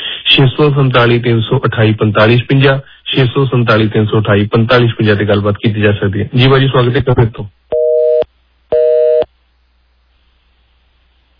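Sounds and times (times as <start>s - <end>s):
speech: 0.4s - 7.6s
telephone busy signal after a dropped call: 7.7s - 9.3s.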